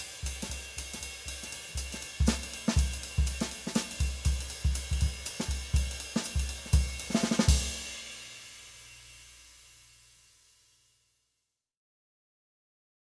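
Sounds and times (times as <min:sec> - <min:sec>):
uptempo bop drumming: 0:00.0 - 0:08.2.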